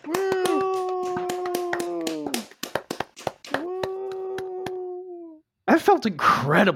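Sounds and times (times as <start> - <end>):
hand clapping: 0.0 - 5.0
speech: 5.8 - 6.7.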